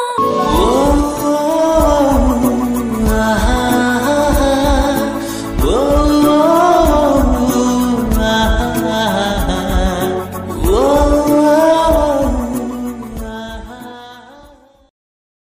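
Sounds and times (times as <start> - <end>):
sad love ringtone background music from a South Indian movie: 0.2 - 14.2.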